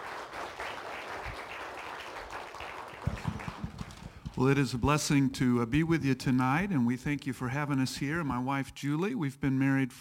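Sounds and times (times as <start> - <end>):
audience applause: 0.0 - 4.4
speech: 4.4 - 9.9.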